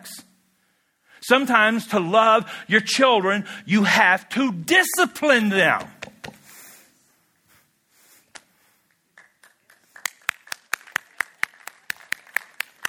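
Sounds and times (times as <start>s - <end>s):
speech: 1.3s - 6.0s
audience rhythmic clapping: 9.1s - 12.8s.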